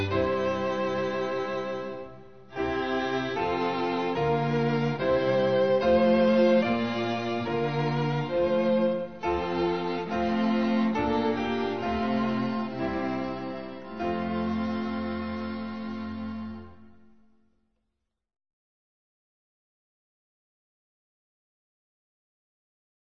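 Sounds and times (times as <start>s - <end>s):
instrumental hymn: 0.0s - 17.4s.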